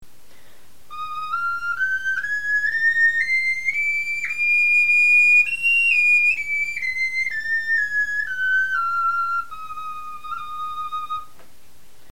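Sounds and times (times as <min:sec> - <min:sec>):
bone flutes playing a scale: 0:00.9 - 0:11.4.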